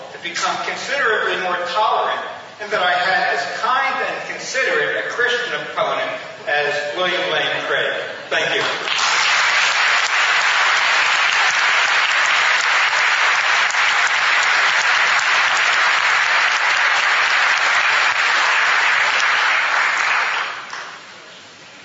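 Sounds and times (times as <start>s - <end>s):
speech: 0.3s - 9.0s
audience round of applause: 8.6s - 21.0s.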